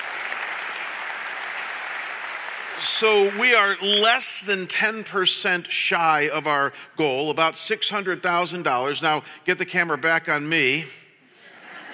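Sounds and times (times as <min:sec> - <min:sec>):
audience clapping: 0:00.0 - 0:04.5
speech: 0:02.8 - 0:11.0.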